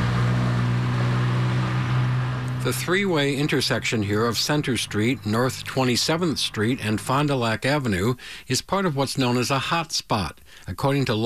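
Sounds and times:
vehicles speeding past a busy three-way city intersection: 0.0s - 8.4s
speech: 2.6s - 11.2s.

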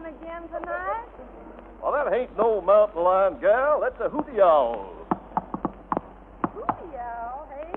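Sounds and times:
speech: 0.1s - 5.0s
knocking on a door: 5.1s - 6.9s.

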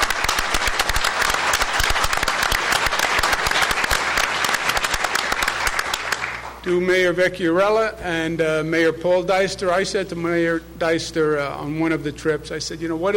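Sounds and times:
crowd clapping: 0.0s - 6.6s
speech: 6.6s - 13.1s.

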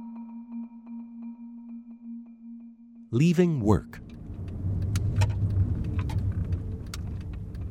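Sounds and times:
speech: 3.1s - 4.1s
car engine rumbling while backing out of a parking space: 4.0s - 7.6s.

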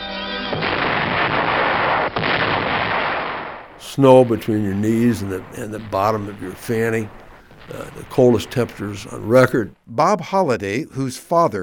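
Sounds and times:
artillery guns firing in the snow in winter 1944, World War II: 0.5s - 9.5s
speech: 4.0s - 11.6s.

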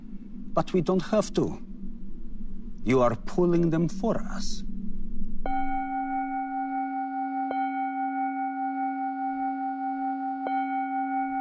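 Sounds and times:
speech: 0.6s - 1.7s, 2.8s - 4.7s
deep bell tolling: 5.4s - 11.3s.

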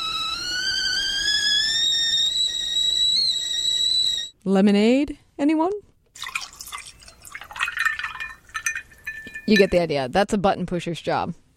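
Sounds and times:
whistling tea kettle: 0.0s - 4.4s, 6.6s - 9.8s
speech: 4.4s - 6.3s, 9.5s - 11.4s.

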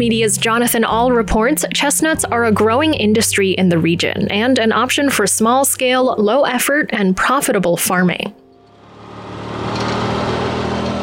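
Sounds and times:
speech: 0.0s - 8.4s
vehicle engine running while driving around a farm near Tipton, Missouri: 8.6s - 11.0s.

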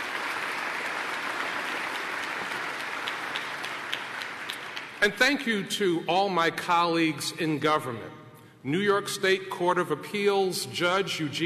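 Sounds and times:
round of applause: 0.0s - 5.2s
speech: 5.0s - 11.4s.

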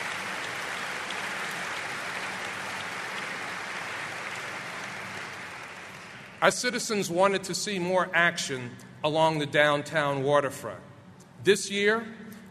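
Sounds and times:
audience applause: 0.0s - 6.5s
speech: 6.4s - 12.4s.

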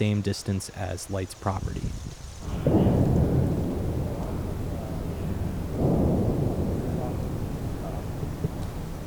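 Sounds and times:
speech: 0.0s - 2.7s
military training explosion booms: 2.4s - 9.0s.

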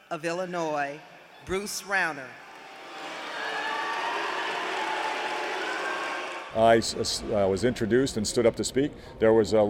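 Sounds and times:
speech: 0.1s - 2.4s, 6.5s - 9.6s
crowd booing at graduation ceremony: 2.4s - 8.1s.

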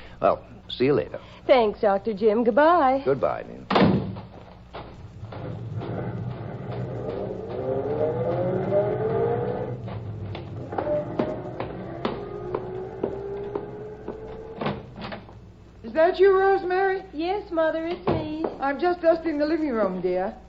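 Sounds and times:
speech: 0.2s - 4.0s, 16.1s - 20.4s
car engine starting and accelerating: 5.1s - 15.1s.

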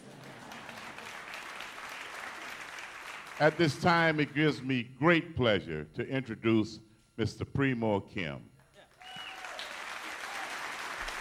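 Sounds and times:
audience applause: 0.0s - 4.3s, 9.0s - 11.2s
speech: 3.4s - 8.5s.

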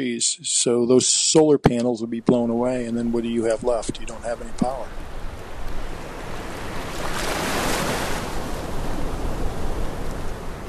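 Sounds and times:
speech: 0.0s - 5.2s
ocean waves: 3.5s - 10.6s.

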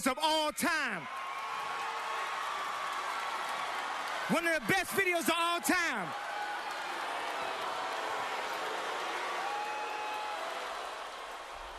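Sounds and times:
speech: 0.0s - 1.2s, 4.3s - 6.2s
crowd booing: 1.0s - 11.7s.

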